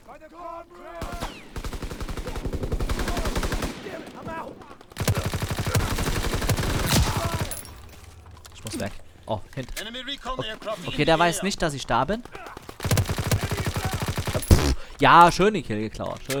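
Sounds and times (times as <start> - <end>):
speech: 0.2 - 1.1, 8.8 - 12.4, 15.0 - 16.3
rapid automatic gunfire in a video game team deathmatch: 1.0 - 7.9, 12.3 - 14.9.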